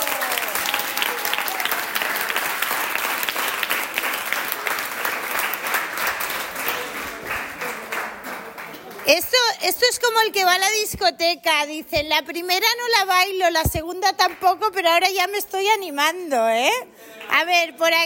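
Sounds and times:
cheering: 0:00.0 - 0:08.8
audience applause: 0:00.0 - 0:09.2
speech: 0:10.0 - 0:18.0.

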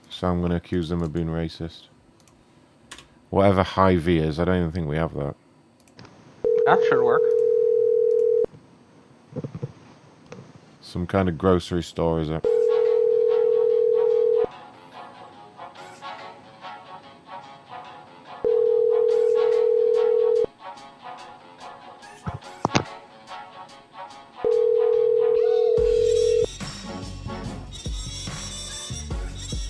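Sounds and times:
speech: 0:00.2 - 0:01.9, 0:03.3 - 0:05.4, 0:06.7 - 0:07.3, 0:10.9 - 0:12.6
ringback tones of an outgoing telephone call: 0:06.4 - 0:08.5, 0:12.5 - 0:14.5, 0:18.4 - 0:20.5, 0:24.4 - 0:26.5.

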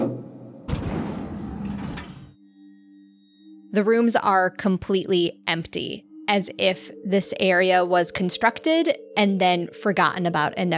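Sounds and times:
elevator doors forced open: 0:00.0 - 0:02.3
speech: 0:03.7 - 0:10.7.

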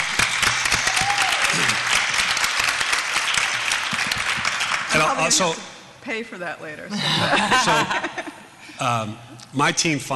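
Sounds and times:
crowd clapping: 0:00.0 - 0:05.6
speech: 0:05.2 - 0:10.1
laughter: 0:07.0 - 0:08.6.

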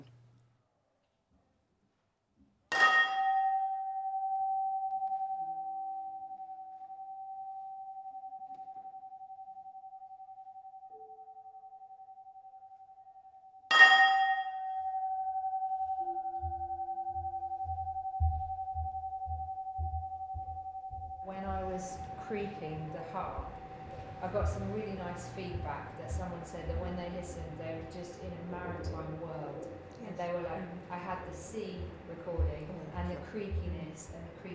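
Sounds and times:
struck metal ring resonating in a room: 0:02.7 - 0:06.4, 0:13.7 - 0:24.6
soft rhythmic low thumps: 0:15.8 - 0:34.5
speech: 0:22.5 - 0:23.5, 0:24.2 - 0:34.5.

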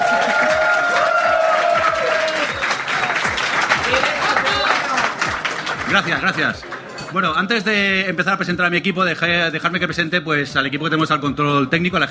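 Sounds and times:
cheering and whistles: 0:00.0 - 0:06.0
live audience applause: 0:00.0 - 0:07.5
speech: 0:05.9 - 0:12.0.

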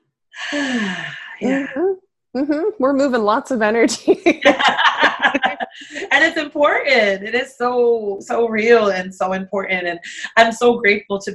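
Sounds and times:
deep breath: 0:00.4 - 0:01.4
speech: 0:00.5 - 0:11.3
laughter: 0:04.0 - 0:06.6.

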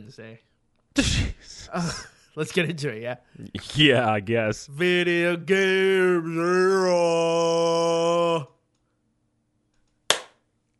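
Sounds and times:
speech: 0:00.0 - 0:08.6
single hand clap: 0:10.1 - 0:10.4.

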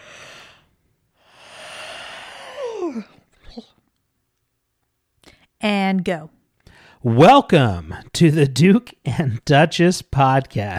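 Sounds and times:
person yawning: 0:01.3 - 0:03.7
speech: 0:02.8 - 0:03.8, 0:05.6 - 0:06.4, 0:07.0 - 0:10.7.

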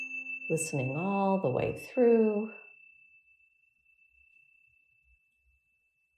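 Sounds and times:
meditation chime ringing: 0:00.0 - 0:01.4
speech: 0:00.5 - 0:02.6.

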